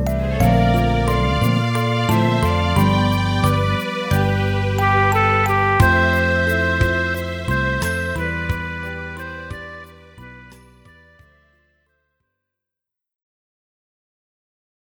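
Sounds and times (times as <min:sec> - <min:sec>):
sad music: 0:00.0 - 0:11.4.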